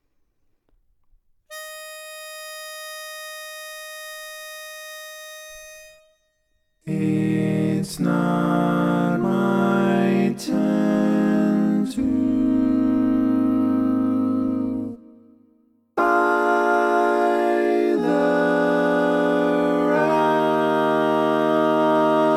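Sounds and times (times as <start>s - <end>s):
barbershop tags lead voice: 6.9s - 14.9s, 16.0s - 22.3s.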